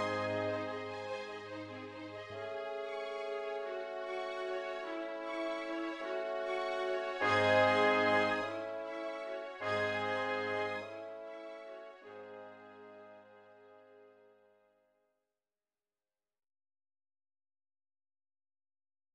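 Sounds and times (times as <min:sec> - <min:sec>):
classical MIDI music: 0:00.0 - 0:14.5.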